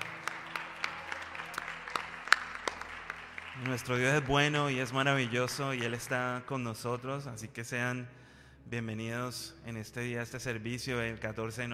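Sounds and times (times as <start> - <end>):
applause: 0.0 - 6.9
speech: 3.6 - 11.7.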